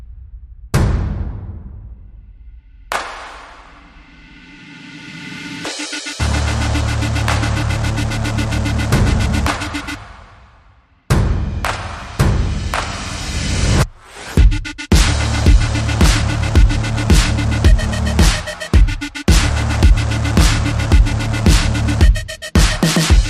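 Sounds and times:
synths: 5.7s - 10.1s, 14.4s - 23.2s
bass: 6.2s - 10.1s, 11.1s - 23.2s.

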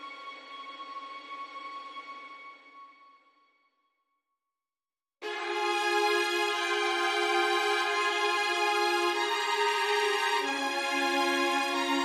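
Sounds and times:
legato strings mix: 5.3s - 12.0s.

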